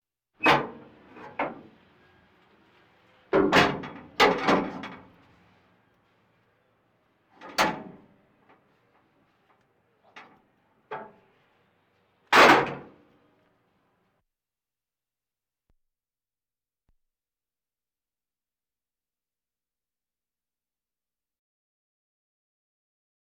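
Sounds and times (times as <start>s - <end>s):
military vehicles: 0.4s - 14.0s.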